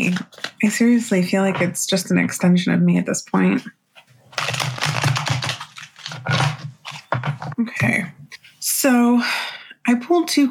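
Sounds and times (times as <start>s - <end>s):
speech: 0.0s - 3.8s, 7.6s - 10.4s
shuffling a Tarot Vintage card deck: 4.0s - 7.6s.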